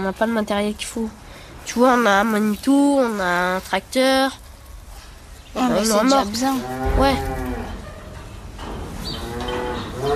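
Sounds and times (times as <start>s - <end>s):
speech: 0.0s - 4.4s, 5.5s - 7.4s
cow mooing: 6.6s - 7.8s, 9.2s - 10.1s.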